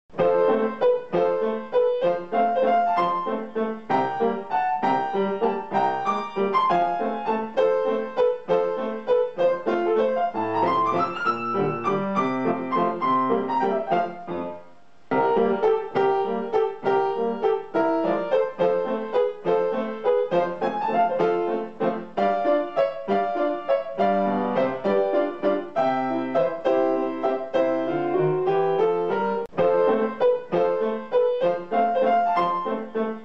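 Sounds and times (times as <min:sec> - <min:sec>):
comic waltz: 0:00.2 - 0:33.2.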